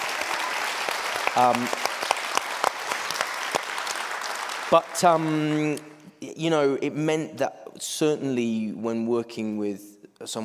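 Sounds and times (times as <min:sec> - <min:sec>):
audience applause: 0:00.0 - 0:05.6
speech: 0:01.4 - 0:01.9, 0:04.7 - 0:10.4.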